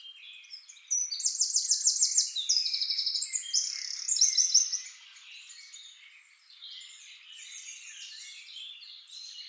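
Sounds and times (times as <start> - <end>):
birds chirping: 0.1 - 9.4
Eurasian wren trilling: 0.9 - 5.0.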